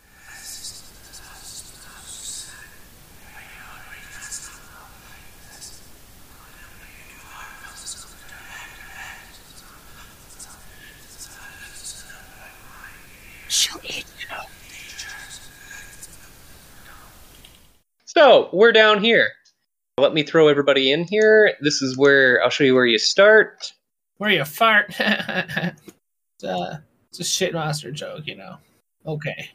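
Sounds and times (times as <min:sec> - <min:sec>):
eerie whispering: 0:00.0 - 0:17.3
static noise: 0:00.0 - 0:17.9
speech: 0:18.3 - 0:19.4, 0:20.0 - 0:29.5.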